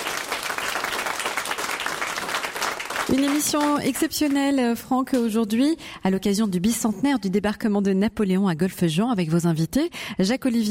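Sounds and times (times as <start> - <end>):
live crowd applauding on the port of Golfe-Juan: 0.0 - 5.4
speech: 3.1 - 10.7.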